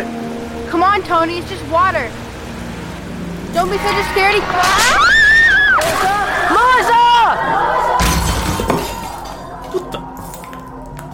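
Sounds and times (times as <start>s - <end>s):
speech: 0.7s - 2.2s, 3.6s - 5.1s, 5.8s - 7.9s
glass shattering from a thrown brick: 8.0s - 9.5s.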